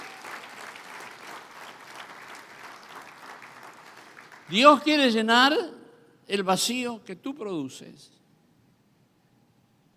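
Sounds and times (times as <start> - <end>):
audience applause: 0.0 - 4.6
speech: 4.5 - 8.2.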